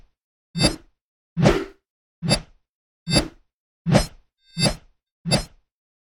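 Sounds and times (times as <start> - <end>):
shredder claw swing movement with and without ringout: 0.6 - 0.8, 3.1 - 5.5.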